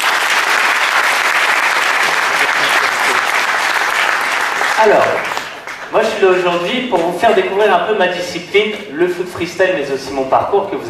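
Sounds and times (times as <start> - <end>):
audience applause: 0.0 - 6.6
speech: 4.8 - 5.3, 5.9 - 10.8.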